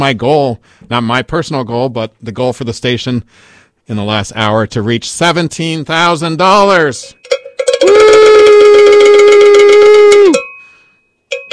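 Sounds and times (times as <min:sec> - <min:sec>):
speech: 0:00.0 - 0:10.4
bell ringing for donation milestone: 0:07.0 - 0:11.5.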